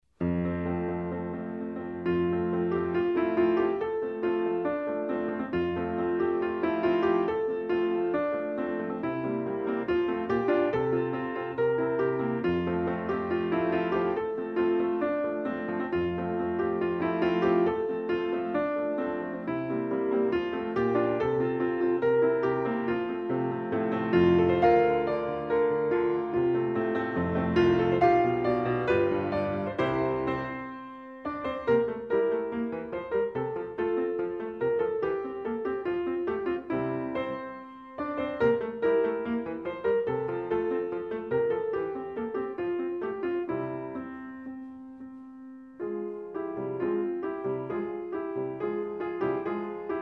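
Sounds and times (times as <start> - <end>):
solo piano: 0.0 - 50.0.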